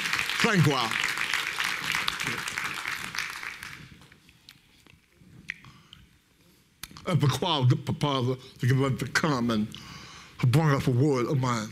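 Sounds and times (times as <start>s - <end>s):
audience hand clapping: 0.0s - 4.2s
speech: 0.4s - 1.0s, 2.3s - 2.6s, 7.1s - 11.7s.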